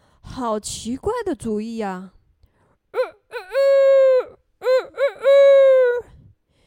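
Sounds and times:
speech: 0:00.4 - 0:02.2
voice imitating hen clucking: 0:03.0 - 0:06.0.

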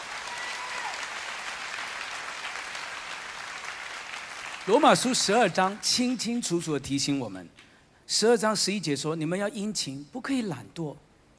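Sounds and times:
audience clapping: 0:00.0 - 0:06.2
speech: 0:04.7 - 0:11.0.

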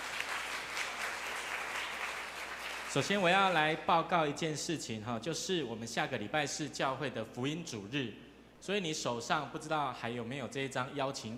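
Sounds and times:
applause: 0:00.0 - 0:03.6
speech: 0:02.9 - 0:11.3.

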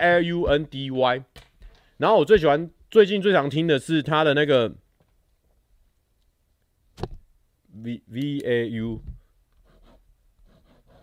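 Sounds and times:
speech: 0:00.0 - 0:04.8, 0:07.8 - 0:09.1
thick pen scratching on paper: 0:09.6 - 0:11.0.

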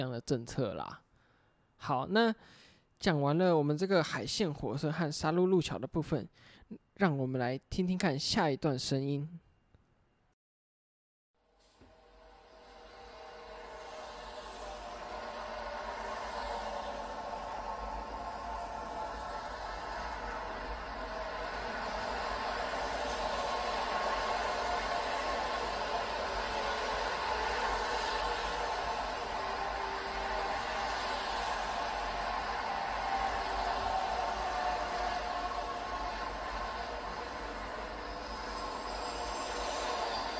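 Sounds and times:
speech: 0:00.0 - 0:01.0, 0:01.8 - 0:09.4
expressway traffic on Taichung Provincial Highway 61: 0:13.0 - 0:40.3.

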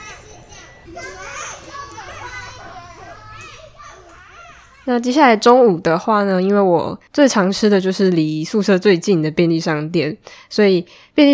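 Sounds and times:
kindergarten children playing energetically: 0:00.0 - 0:05.3
speech: 0:00.9 - 0:01.4, 0:04.8 - 0:11.3.

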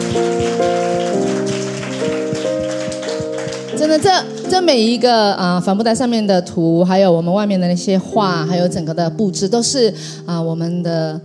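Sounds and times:
audience applause: 0:00.0 - 0:04.6
speech: 0:04.0 - 0:11.2.

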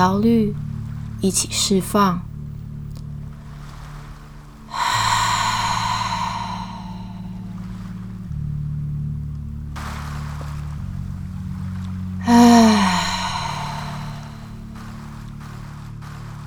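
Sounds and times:
speech: 0:00.0 - 0:02.3
low musical drone: 0:00.0 - 0:16.4
deep audible exhale: 0:03.3 - 0:08.3, 0:12.2 - 0:16.3.

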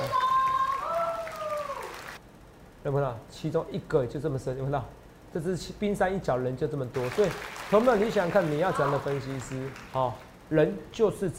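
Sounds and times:
audience applause: 0:00.0 - 0:02.2, 0:07.0 - 0:10.3
speech: 0:02.8 - 0:11.3.

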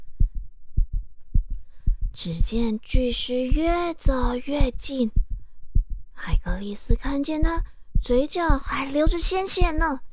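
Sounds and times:
pounding heartbeat: 0:00.0 - 0:10.1
speech: 0:02.2 - 0:05.2, 0:06.2 - 0:10.0.

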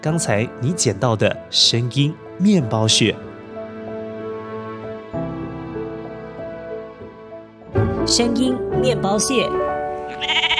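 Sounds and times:
speech: 0:00.0 - 0:03.3, 0:08.1 - 0:10.5
sheep bleating: 0:10.1 - 0:10.5.

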